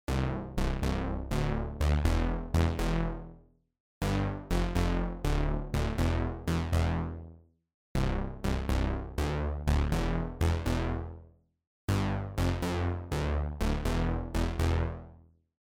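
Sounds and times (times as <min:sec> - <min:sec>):
bass: 0:00.1 - 0:07.4, 0:08.0 - 0:11.3, 0:11.9 - 0:15.3.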